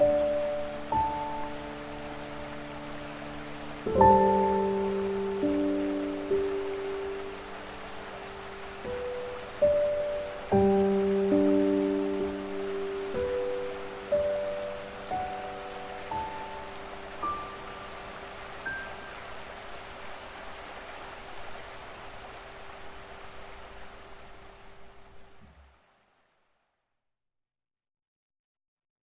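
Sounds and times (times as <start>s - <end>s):
piano: 0.0s - 20.6s
streaming water: 0.0s - 26.4s.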